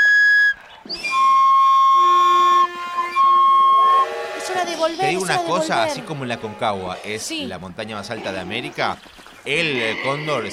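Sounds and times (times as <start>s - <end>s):
train whistle: 0.0s - 5.8s
speech: 4.9s - 10.5s.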